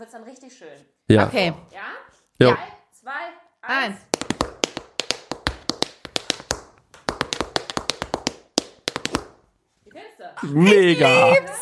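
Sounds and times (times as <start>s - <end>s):
speech: 0.0s - 4.2s, 10.2s - 11.6s
tap dancing in tap shoes: 4.0s - 9.4s
laughter: 10.4s - 11.6s.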